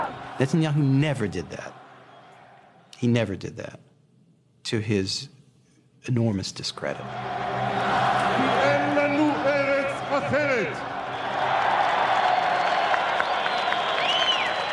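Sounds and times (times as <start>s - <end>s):
large rally crowd cheering and roaring: 0.0s - 2.9s, 6.9s - 14.7s
speech: 0.4s - 1.8s, 3.0s - 3.8s, 4.7s - 5.4s, 6.0s - 8.6s
scattered shouts and whistles: 1.8s - 2.8s, 7.0s - 14.7s
applause: 7.4s - 14.7s.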